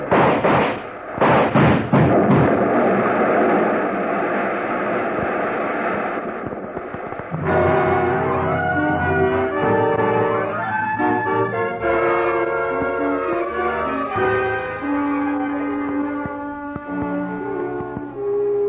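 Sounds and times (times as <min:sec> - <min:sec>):
car exploding in gasoline explosion: 0:00.0 - 0:09.8
tonal swell: 0:07.3 - 0:18.6.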